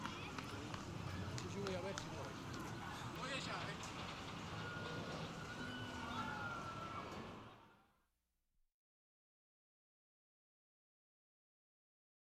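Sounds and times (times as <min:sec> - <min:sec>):
roller coaster: 0:00.0 - 0:07.7.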